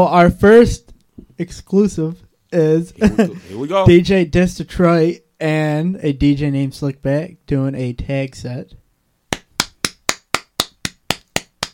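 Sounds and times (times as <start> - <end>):
speech: 0.0 - 0.8, 1.4 - 8.8
laughter: 3.0 - 3.9
hand claps close to microphone: 9.3 - 11.7.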